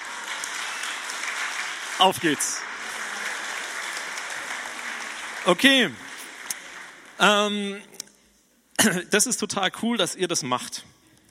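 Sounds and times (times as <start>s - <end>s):
audience applause: 0.0s - 7.6s
speech: 2.0s - 2.7s, 5.4s - 6.0s, 7.2s - 8.0s, 8.8s - 11.0s.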